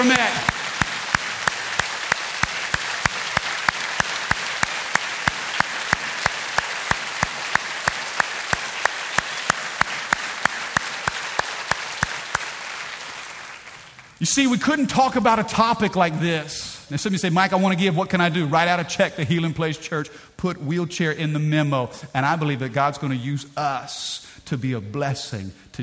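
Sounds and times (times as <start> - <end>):
audience applause: 0.0 - 14.2
speech: 14.2 - 25.8.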